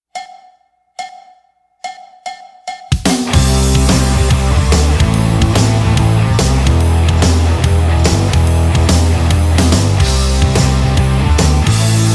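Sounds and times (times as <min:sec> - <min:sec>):
sparse ringing percussive hits: 0:00.1 - 0:12.1
full band with heavy bass and drums: 0:03.3 - 0:12.1.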